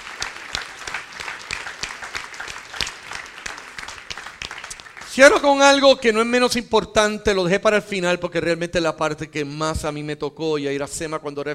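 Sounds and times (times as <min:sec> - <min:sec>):
audience applause: 0:00.0 - 0:05.4
speech: 0:05.2 - 0:11.5.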